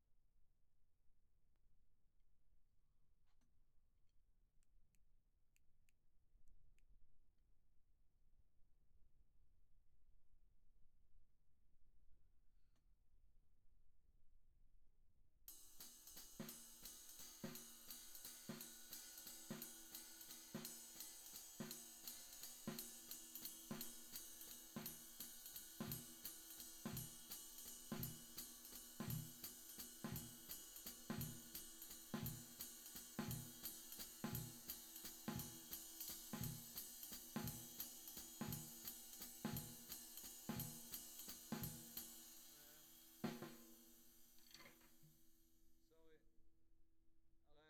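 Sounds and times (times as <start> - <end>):
tom drum: 15.5 - 44.2.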